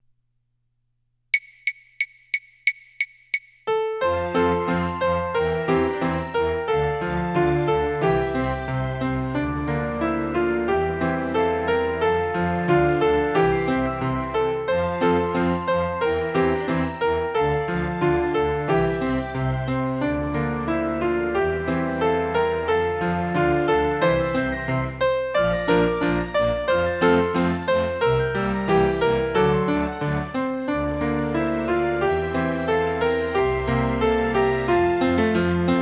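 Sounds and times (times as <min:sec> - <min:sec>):
solo with accompaniment: 0:03.7 - 0:35.7.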